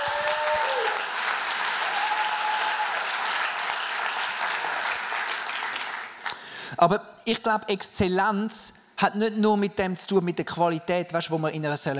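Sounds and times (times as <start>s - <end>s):
applause: 0.0s - 6.4s
speech: 6.8s - 11.9s.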